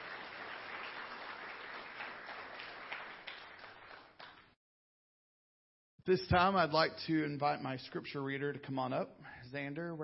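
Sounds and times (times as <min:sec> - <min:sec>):
crowd applause: 0:00.0 - 0:04.5
speech: 0:06.1 - 0:10.0.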